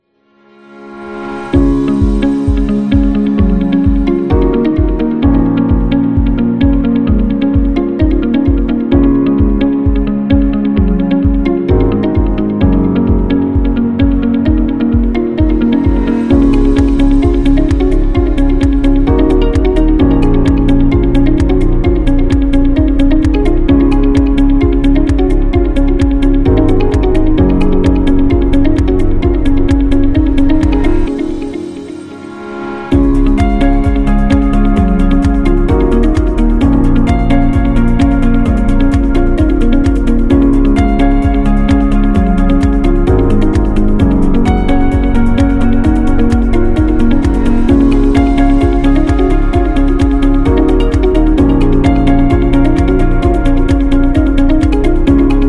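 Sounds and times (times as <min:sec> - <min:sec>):
educational corporate background music: 0:00.4 - 0:55.4.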